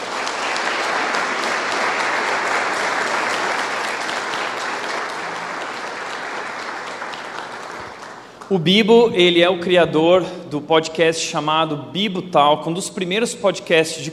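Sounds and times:
audience applause: 0.0 - 8.5
speech: 8.5 - 14.1.

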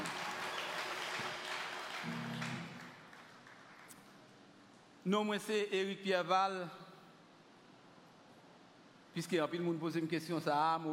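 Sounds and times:
audience applause: 0.0 - 4.0
speech: 5.0 - 6.8, 9.2 - 10.9.

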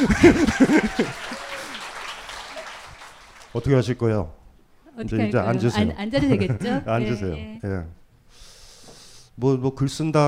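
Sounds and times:
speech: 0.0 - 1.3, 3.6 - 4.4, 5.0 - 8.4, 9.4 - 10.2
laughter: 0.0 - 2.7, 6.1 - 7.1
audience applause: 0.0 - 3.9.

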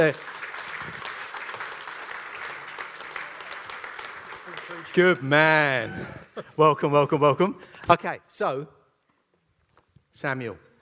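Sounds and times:
speech: 0.0 - 1.0, 5.0 - 8.8, 10.2 - 10.7
crowd clapping: 0.0 - 5.7.

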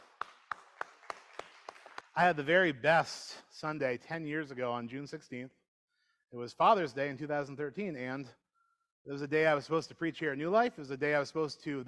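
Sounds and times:
audience clapping for the fathers: 0.0 - 2.4
speech: 2.2 - 5.6, 6.3 - 8.4, 9.0 - 11.8.

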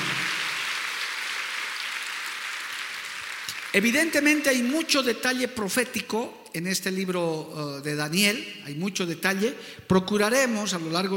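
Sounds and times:
audience applause: 0.0 - 4.4
speech: 3.7 - 11.1.

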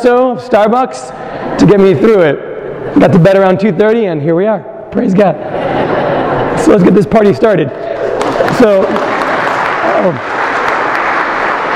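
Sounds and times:
speech: 0.0 - 6.0, 6.6 - 9.1, 10.0 - 10.3
laughter: 5.2 - 10.3
audience applause: 8.0 - 11.7.

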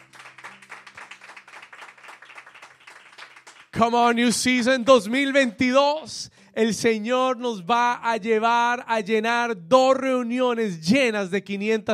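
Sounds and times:
crowd applause: 0.0 - 5.4
speech: 3.8 - 11.9.

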